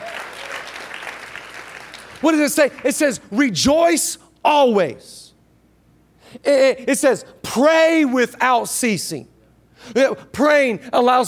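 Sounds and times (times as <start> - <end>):
crowd clapping: 0.0 - 2.9
speech: 2.2 - 5.2, 6.4 - 11.2.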